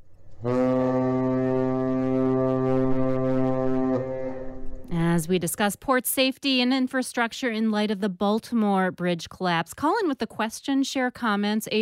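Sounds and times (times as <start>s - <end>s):
speech: 0.4s - 0.6s, 5.2s - 11.8s
ocean-going cargo ship horn blast: 0.4s - 5.3s.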